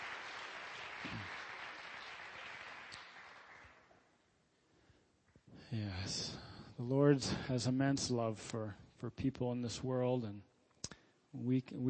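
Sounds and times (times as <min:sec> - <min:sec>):
applause: 0:00.0 - 0:04.2
speech: 0:05.7 - 0:10.5, 0:11.3 - 0:11.8.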